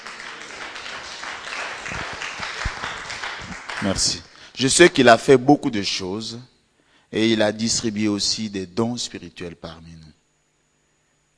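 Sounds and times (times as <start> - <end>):
crowd at a religious gathering applauding: 0.0 - 4.3
speech: 3.8 - 6.5, 7.1 - 10.1.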